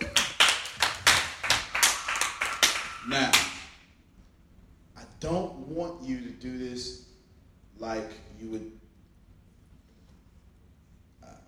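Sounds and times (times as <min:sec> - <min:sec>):
hand clapping: 0:00.0 - 0:03.8
speech: 0:03.1 - 0:03.5, 0:05.2 - 0:07.1, 0:07.8 - 0:08.8.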